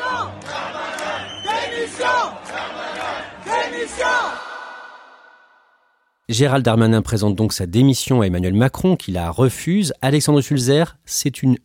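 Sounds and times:
deputies chanting and clamoring in parliament chamber: 0.0s - 4.9s
speech: 3.7s - 4.5s, 6.3s - 11.6s.

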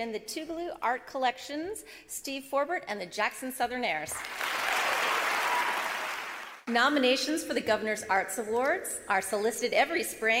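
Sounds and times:
speech: 0.0s - 4.6s, 6.7s - 10.3s
audience round of applause: 4.2s - 6.6s.

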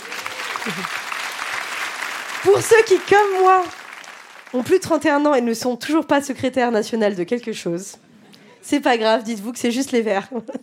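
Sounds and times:
audience applause: 0.0s - 4.8s
laughter: 0.4s - 1.1s
speech: 0.6s - 1.0s, 2.4s - 3.8s, 4.5s - 10.6s.

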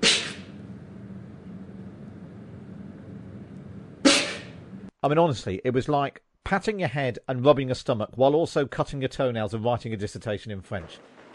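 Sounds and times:
short sharp breaths held during anti-G straining: 0.0s - 0.6s
speech: 5.0s - 11.2s.

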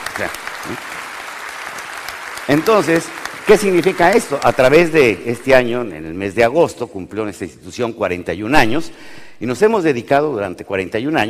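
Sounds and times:
audience applauding loudly: 0.0s - 6.2s
speech: 0.2s - 1.0s, 2.5s - 11.2s.

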